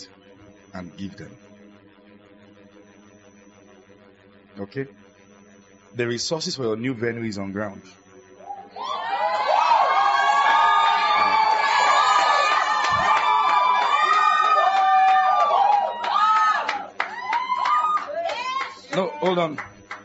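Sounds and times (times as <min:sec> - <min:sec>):
speech: 0:00.7 - 0:01.5, 0:04.6 - 0:05.0, 0:05.9 - 0:08.0, 0:19.2 - 0:20.0
large audience cheering and shouting: 0:08.4 - 0:19.3.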